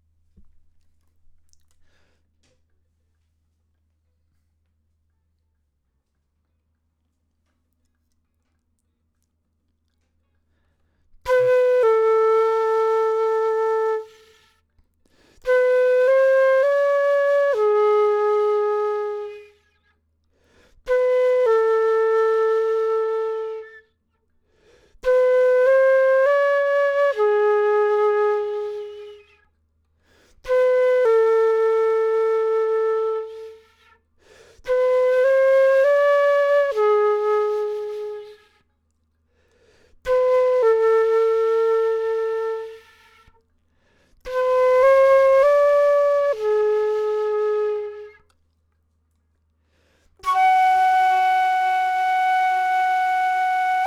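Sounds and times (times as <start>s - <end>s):
flute: 11.2s - 14.7s, 15.4s - 20.0s, 20.8s - 24.0s, 25.0s - 29.6s, 30.3s - 38.7s, 40.0s - 43.4s, 44.2s - 48.4s, 50.2s - 53.8s.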